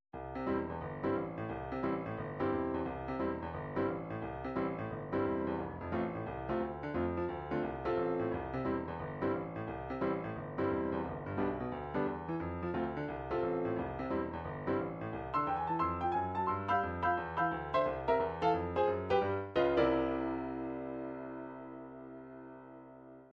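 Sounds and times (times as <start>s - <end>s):
piano rock: 0.2s - 23.3s.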